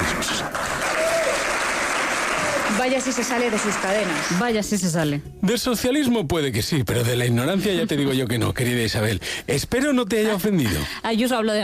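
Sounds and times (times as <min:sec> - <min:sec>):
audience applause: 0:00.0 - 0:04.5
speech: 0:02.8 - 0:11.6.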